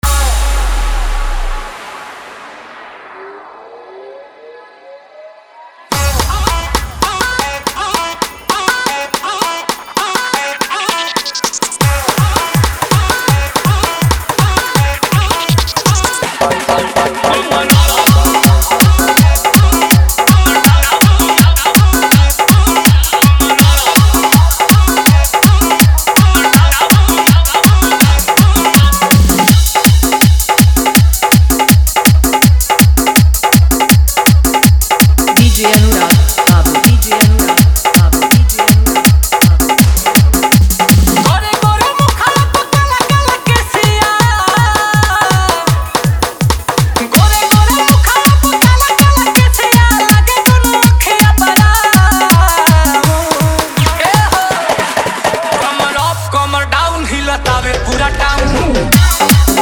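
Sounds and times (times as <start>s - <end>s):
Bhojpuri dholak drum with bass: 0.0s - 3.2s, 5.9s - 56.4s, 57.2s - 59.6s.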